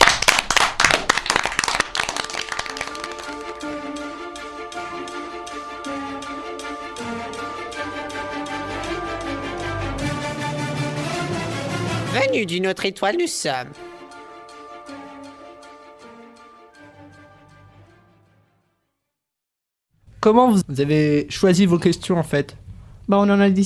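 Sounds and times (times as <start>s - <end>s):
audience clapping: 0.0s - 4.4s
rhythmic music with sustained tones: 1.9s - 18.2s
speech: 12.4s - 13.9s, 20.3s - 23.6s.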